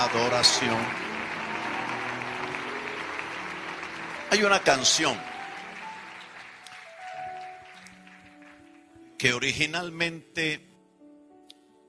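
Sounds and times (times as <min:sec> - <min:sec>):
speech: 0:00.0 - 0:01.1, 0:04.3 - 0:05.3, 0:09.2 - 0:10.7
audience applause: 0:00.0 - 0:08.9.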